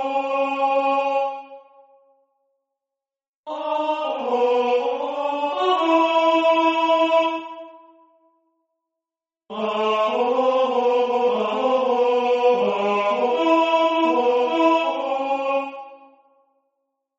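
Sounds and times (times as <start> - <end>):
tenor singing: 0.0 - 1.8, 3.5 - 7.9, 9.5 - 16.2.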